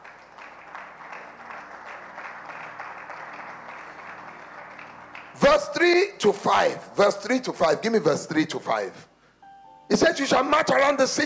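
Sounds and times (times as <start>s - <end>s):
audience clapping: 0.0s - 5.9s
speech: 5.4s - 9.1s, 9.9s - 11.2s.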